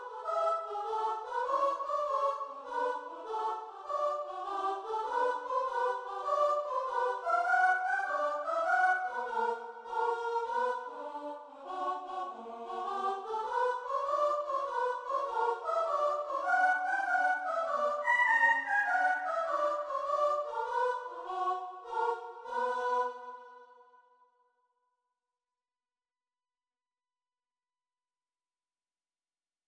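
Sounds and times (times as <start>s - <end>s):
soprano singing a fugue: 0.0s - 22.4s.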